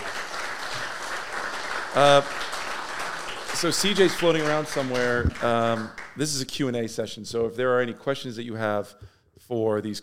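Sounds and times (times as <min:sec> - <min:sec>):
audience applause: 0:00.0 - 0:06.5
speech: 0:02.0 - 0:02.5, 0:03.6 - 0:10.0.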